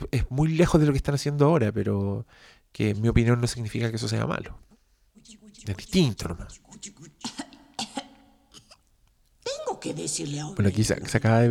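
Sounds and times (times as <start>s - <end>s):
speech: 0.2s - 7.4s, 9.8s - 11.5s
pregnant woman coughing in a TV show: 6.5s - 8.9s.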